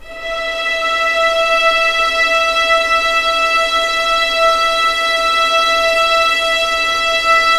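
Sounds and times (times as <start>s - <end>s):
violins playing legato E5 mezzo-forte: 0.0s - 7.5s.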